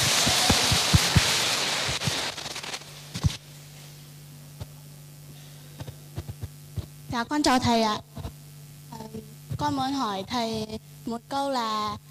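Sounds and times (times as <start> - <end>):
audience applause: 0.0 - 2.2
speech: 7.1 - 8.1, 9.6 - 12.1.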